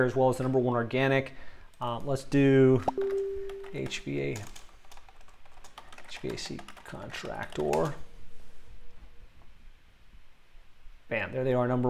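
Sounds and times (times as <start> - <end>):
speech: 0.0 - 4.6, 6.2 - 8.0, 11.1 - 11.8
computer keyboard typing: 2.9 - 8.0.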